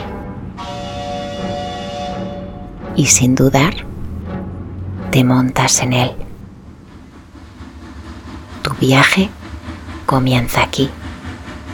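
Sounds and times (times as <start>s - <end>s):
train horn: 0.0s - 2.8s
rail noise rumble: 0.0s - 11.7s
speech: 3.0s - 3.9s, 5.2s - 6.2s, 8.8s - 9.4s, 10.1s - 11.0s.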